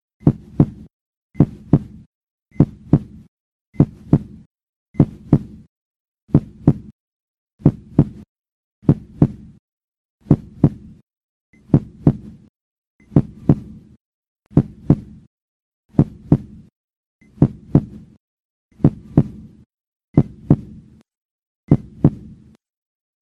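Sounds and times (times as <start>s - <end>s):
heartbeat: 0.2s - 5.7s, 6.3s - 7.0s, 7.6s - 9.6s, 10.3s - 11.0s, 11.6s - 12.4s, 13.1s - 13.8s, 14.5s - 15.2s, 15.9s - 16.7s, 17.3s - 18.2s, 18.8s - 19.5s, 20.2s - 20.8s, 21.7s - 22.4s.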